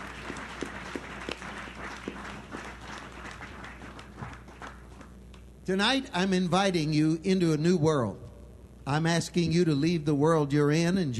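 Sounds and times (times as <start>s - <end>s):
audience applause: 0.0s - 5.2s
speech: 5.7s - 8.2s, 8.9s - 11.1s.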